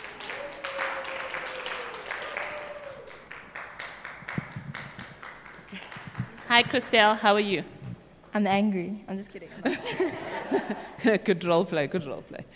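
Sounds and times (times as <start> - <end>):
audience applause: 0.0 - 7.0
speech: 6.6 - 7.8, 8.4 - 12.5
laughter: 9.6 - 11.2.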